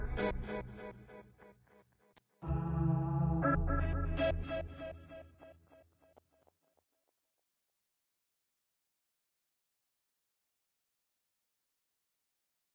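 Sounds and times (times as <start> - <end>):
guitar effects: 2.4 - 5.5.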